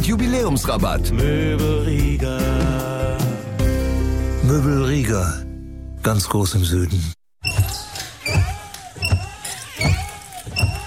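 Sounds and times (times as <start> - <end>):
speech: 0.1 - 3.2, 4.5 - 5.4, 6.0 - 7.2
worn car windshield wipers squeaking: 7.4 - 10.8.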